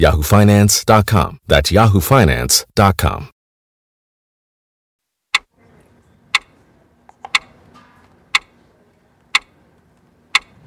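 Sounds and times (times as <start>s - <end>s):
speech: 0.0s - 3.3s
clock ticking: 5.3s - 5.5s, 6.3s - 6.5s, 7.2s - 7.5s, 8.3s - 8.6s, 9.3s - 9.5s, 10.3s - 10.6s.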